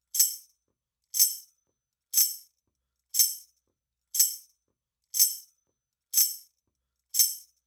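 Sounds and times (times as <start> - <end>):
tambourine: 0.0 - 0.6, 1.2 - 1.6, 2.2 - 3.6, 4.2 - 4.6, 5.2 - 5.6, 6.2 - 7.6.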